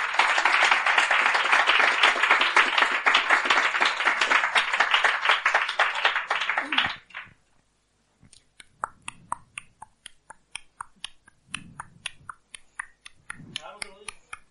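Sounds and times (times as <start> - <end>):
loud applause: 0.0 - 7.4.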